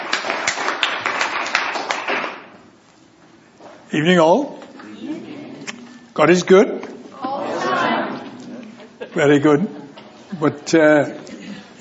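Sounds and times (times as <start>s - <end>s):
audience applause: 0.0s - 2.4s
speech: 3.9s - 5.3s, 6.2s - 6.9s, 9.2s - 11.7s.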